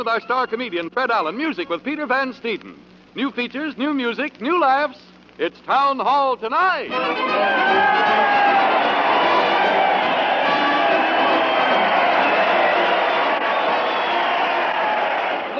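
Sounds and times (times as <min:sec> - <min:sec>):
speech: 0:00.0 - 0:08.6
large crowd cheering and shouting: 0:06.9 - 0:15.5.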